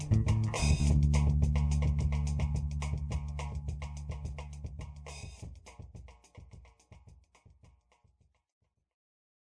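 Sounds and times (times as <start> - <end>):
samba music: 0.0 - 6.8.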